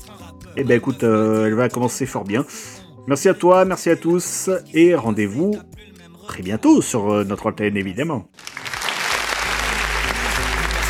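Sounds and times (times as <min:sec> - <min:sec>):
speech: 0:00.5 - 0:08.4
crowd applauding: 0:08.4 - 0:10.8.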